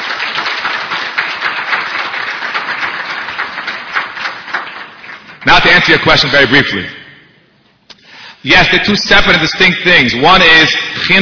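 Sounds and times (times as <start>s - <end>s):
audience applause: 0.0s - 6.0s
speech: 5.4s - 7.0s, 8.4s - 11.2s.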